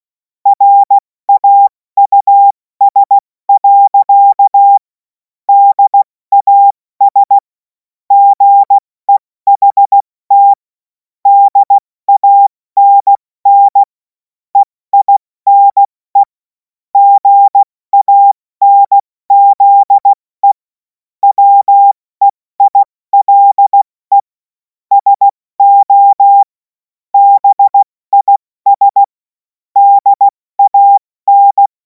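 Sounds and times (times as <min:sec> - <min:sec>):
CW morse code beeps: 0:00.5 - 0:04.8, 0:05.5 - 0:07.4, 0:08.1 - 0:10.6, 0:11.3 - 0:13.9, 0:14.5 - 0:16.4, 0:17.0 - 0:20.6, 0:21.2 - 0:24.3, 0:24.9 - 0:26.5, 0:27.2 - 0:29.2, 0:29.8 - 0:31.7.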